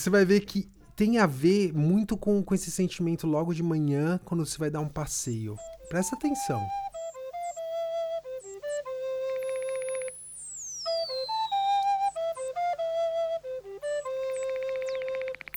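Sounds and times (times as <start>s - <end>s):
speech: 0.0s - 6.9s
synthesizer imitating birdsong: 4.9s - 15.5s.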